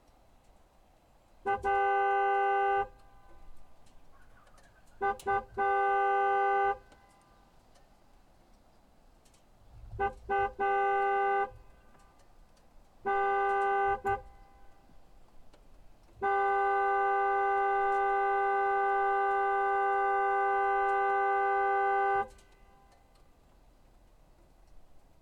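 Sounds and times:
McLaren 720S car horn: 0:01.4 - 0:03.6, 0:04.8 - 0:07.3, 0:09.7 - 0:12.2, 0:13.0 - 0:15.0, 0:16.1 - 0:23.1.

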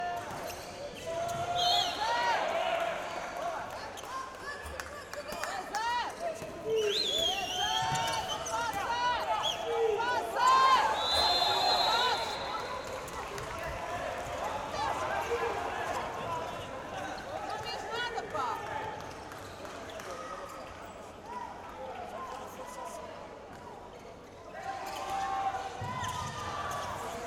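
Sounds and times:
men's handball match ambience: 0:00.0 - 0:27.2.

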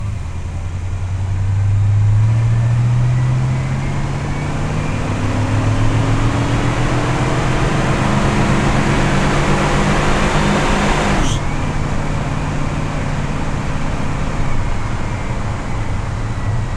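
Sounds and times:
1967 Pontiac GTO engine at steady RPMs onboard while driving: 0:00.0 - 0:16.7.

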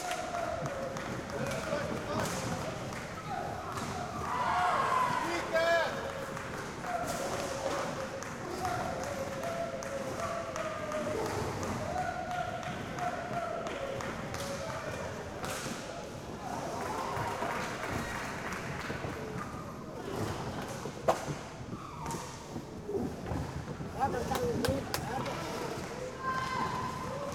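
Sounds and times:
women's league roller hockey match ambience: 0:00.0 - 0:27.3.

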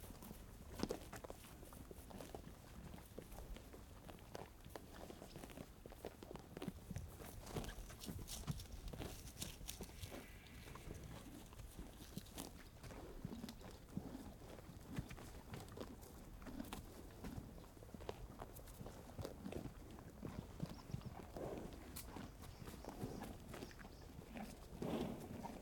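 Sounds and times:
ranch horse chewing in a pasture: 0:00.0 - 0:25.6
ranch horse trotting in a pasture: 0:05.9 - 0:25.6
ranch horse snorting in a pasture: 0:07.5 - 0:14.3, 0:21.1 - 0:25.6.

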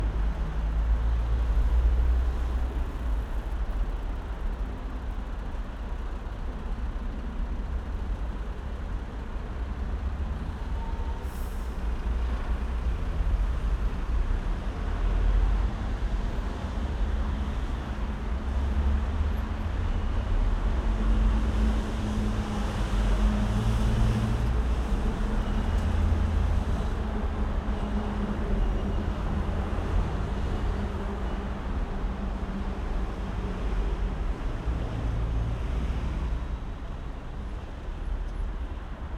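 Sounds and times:
heavy trucks passing slowly at a large main road junction in Berlin: 0:00.0 - 0:39.1.

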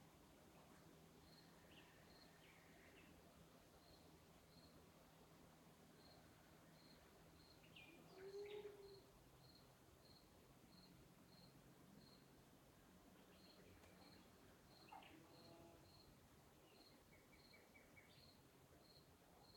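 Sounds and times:
night birds in the countryside: 0:00.4 - 0:19.5
cricket: 0:01.2 - 0:02.9, 0:03.8 - 0:04.8, 0:05.9 - 0:12.3, 0:13.4 - 0:19.5.

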